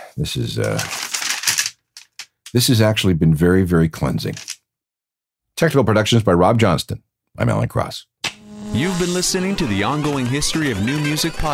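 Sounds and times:
speech: 0.2 - 1.1, 2.5 - 4.5, 5.6 - 8.1, 8.7 - 11.5
paper being crumpled and tossed out: 0.6 - 2.3, 4.3 - 4.6
vocal sound: 8.4 - 11.1.

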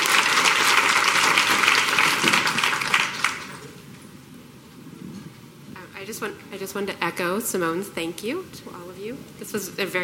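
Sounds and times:
audience applause for panelists: 0.0 - 3.8
speech: 6.2 - 10.0.

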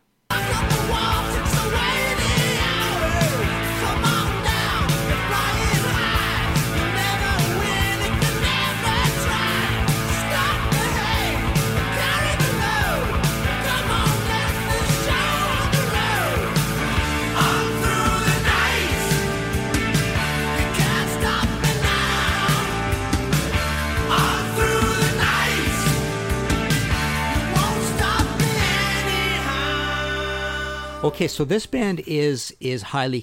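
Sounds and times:
New Wave of British Heavy Metal song: 0.3 - 31.3
speech: 31.2 - 33.2.

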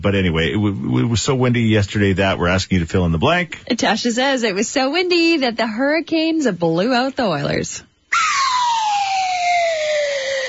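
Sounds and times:
speech: 0.0 - 8.4
slide whistle sound effect: 8.1 - 10.4.

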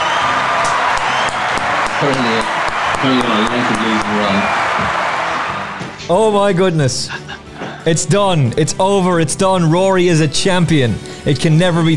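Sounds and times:
studio audience applause for a champion horse-racing tipster: 0.0 - 6.1
speech: 2.0 - 5.0, 6.1 - 11.9
laughter: 6.9 - 7.8.

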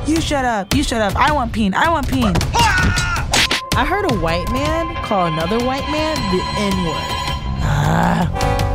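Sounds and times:
speech: 0.2 - 3.1, 3.7 - 7.1, 7.8 - 8.6
person burping: 7.6 - 8.4.

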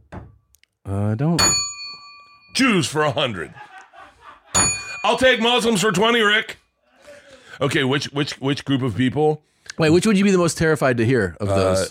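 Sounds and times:
speech: 0.9 - 1.7, 2.6 - 3.7, 5.0 - 6.6, 7.6 - 11.8
bright bell ding during a casual trivia-style game: 1.4 - 2.9, 4.5 - 5.9
laughter: 3.0 - 5.4.

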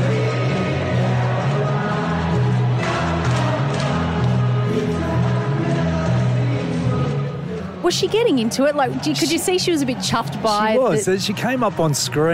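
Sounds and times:
huge stadium crowd singing a song in unison: 0.0 - 12.3
speech: 7.9 - 12.3.

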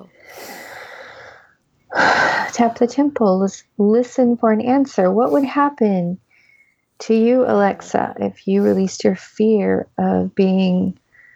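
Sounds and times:
deep breath: 0.1 - 2.8, 5.2 - 5.6, 6.3 - 6.8, 11.1 - 11.3
speech: 2.6 - 6.2, 7.0 - 11.0.

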